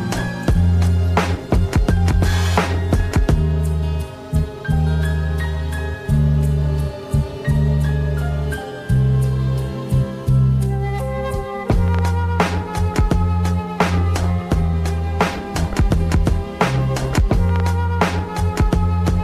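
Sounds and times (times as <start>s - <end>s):
oldschool jazz hip hop beat: 0.0s - 19.2s.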